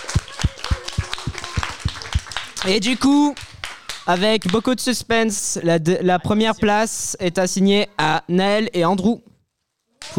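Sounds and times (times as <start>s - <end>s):
small group clapping at a prize-giving of a game competition: 0.0s - 4.8s, 10.0s - 10.1s
speech: 2.6s - 3.4s, 4.0s - 9.3s.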